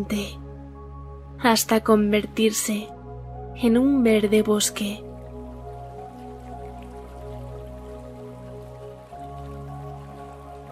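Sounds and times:
speech: 0:00.0 - 0:00.4, 0:01.4 - 0:03.0, 0:03.6 - 0:05.1
freshwater stream flowing: 0:04.1 - 0:10.6.

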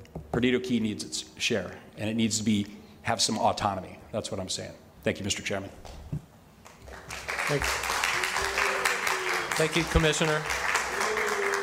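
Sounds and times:
speech: 0:00.4 - 0:06.0, 0:07.5 - 0:07.8, 0:09.6 - 0:10.6
audience applause at a commission meeting: 0:06.6 - 0:11.6.

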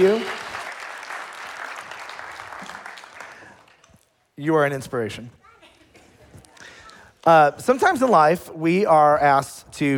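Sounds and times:
speech: 0:00.0 - 0:00.4, 0:04.4 - 0:05.4, 0:07.2 - 0:09.9
audience applause: 0:00.0 - 0:03.8.

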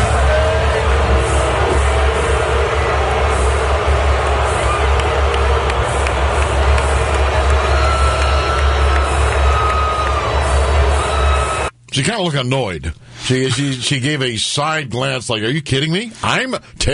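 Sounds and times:
stadium crowd cheering and booing: 0:00.0 - 0:11.7
speech: 0:12.0 - 0:16.9.

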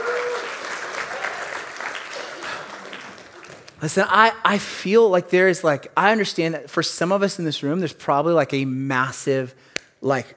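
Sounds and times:
audience round of applause: 0:00.0 - 0:03.9
speech: 0:03.8 - 0:10.3.

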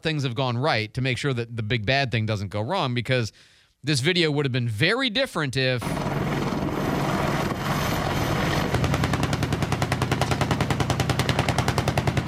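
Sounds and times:
speech: 0:00.0 - 0:06.1
Apache helicopter single-barrel 30 cal gun automatic gunfire: 0:05.8 - 0:12.2
noisy rumbling: 0:05.8 - 0:12.2.

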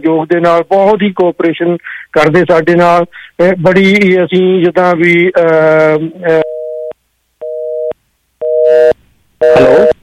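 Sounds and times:
speech: 0:00.0 - 0:06.5, 0:09.4 - 0:09.9
busy tone of a disconnected telephone line: 0:06.4 - 0:10.0.

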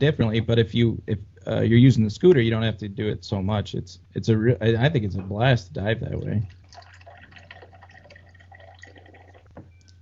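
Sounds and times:
speech: 0:00.0 - 0:06.9
topping off a glass of water: 0:06.4 - 0:10.0.

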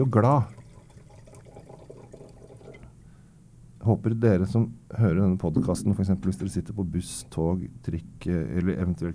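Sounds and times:
speech: 0:00.0 - 0:00.6, 0:03.8 - 0:09.1
red wine pouring into a glass: 0:00.4 - 0:02.9.

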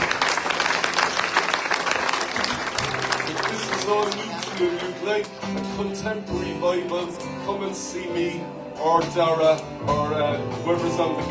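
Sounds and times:
audience applause: 0:00.0 - 0:05.3
speech: 0:03.9 - 0:11.2.

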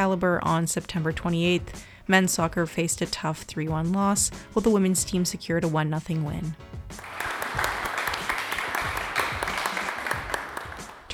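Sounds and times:
speech: 0:00.0 - 0:07.3
clapping at Sail Canada's 2025 Senior Championship final ceremony: 0:06.9 - 0:11.1.

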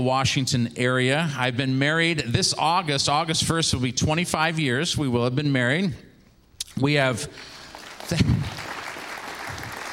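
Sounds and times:
speech: 0:00.0 - 0:06.1, 0:06.8 - 0:08.6
audience clapping: 0:07.3 - 0:09.9.

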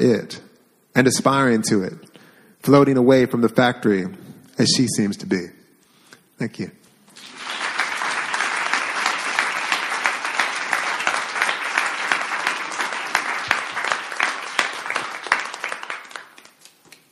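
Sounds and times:
speech: 0:00.0 - 0:00.4, 0:01.0 - 0:05.6, 0:06.4 - 0:06.8
crowd applause: 0:07.1 - 0:17.0.

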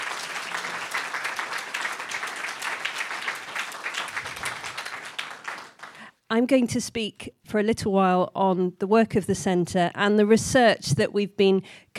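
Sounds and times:
crowd applauding: 0:00.0 - 0:06.1
speech: 0:06.3 - 0:11.9.

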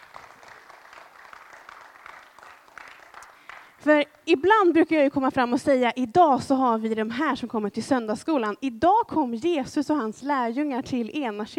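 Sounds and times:
audience applause: 0:00.0 - 0:03.8
speech: 0:03.8 - 0:11.5.

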